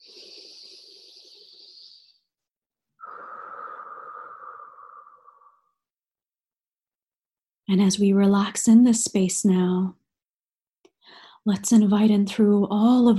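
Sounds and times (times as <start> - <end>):
deep inhales during a guided relaxation: 0.0 - 2.2, 3.0 - 5.7, 11.0 - 11.4
speech: 7.7 - 10.0, 11.4 - 13.1.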